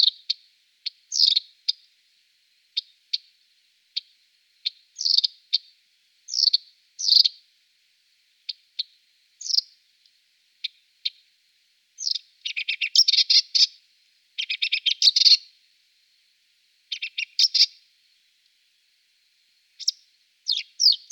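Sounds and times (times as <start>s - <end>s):
marsh warbler song: 0.0s - 1.8s, 4.0s - 5.7s, 6.3s - 7.4s, 8.5s - 9.8s, 12.0s - 13.8s, 14.4s - 15.5s, 16.9s - 17.8s, 19.8s - 21.1s.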